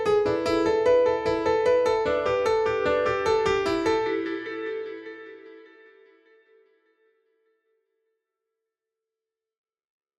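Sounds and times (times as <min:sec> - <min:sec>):
piano: 0:00.0 - 0:06.8.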